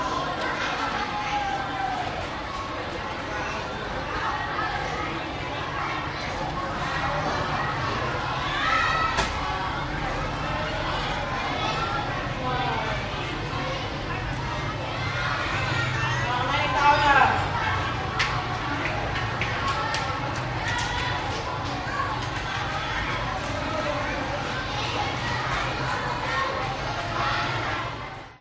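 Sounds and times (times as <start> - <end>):
busy school playground children walla in Vietnam: 0.0 - 28.3.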